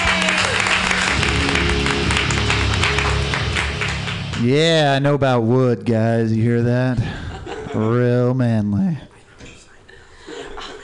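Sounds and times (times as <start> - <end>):
audience applause for a comedian at a comedy workshop show: 0.0 - 4.8
speech: 4.4 - 9.1.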